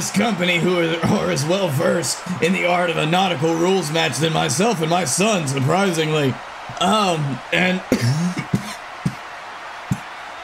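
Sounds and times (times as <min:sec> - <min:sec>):
speech: 0:00.0 - 0:08.5
person coughing after a sip of Natty juice went down the wrong way: 0:07.9 - 0:08.8.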